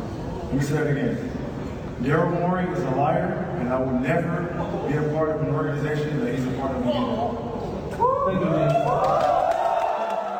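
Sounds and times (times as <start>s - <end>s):
speech: 0.5s - 1.4s, 2.0s - 9.4s
cheers and whoops from many voices: 8.0s - 10.3s
faint crowd applause: 8.3s - 10.3s.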